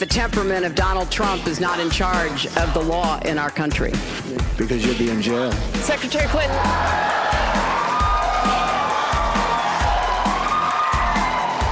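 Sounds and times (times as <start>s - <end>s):
speech: 0.0s - 7.6s
audience cheering and applauding: 6.0s - 11.7s.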